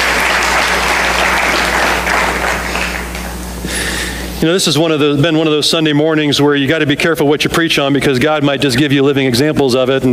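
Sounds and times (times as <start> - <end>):
audience hand clapping: 0.0 - 3.5
speech: 4.4 - 10.1.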